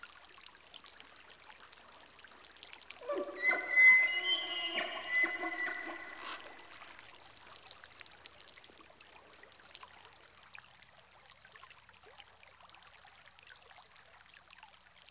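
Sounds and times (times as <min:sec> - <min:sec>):
elk in rainforest: 0:03.0 - 0:07.0.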